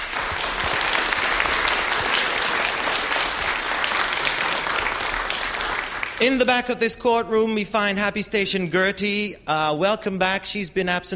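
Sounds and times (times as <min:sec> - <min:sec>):
studio audience applause: 0:00.0 - 0:06.6
speech: 0:06.2 - 0:11.1.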